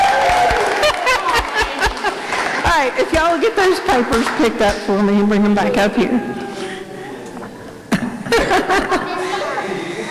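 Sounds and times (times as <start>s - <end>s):
whoops: 0.0s - 1.0s
audience applause for a winner: 0.0s - 4.7s
laughter: 0.0s - 4.8s, 5.6s - 10.0s
speech: 2.8s - 6.6s, 8.4s - 9.1s.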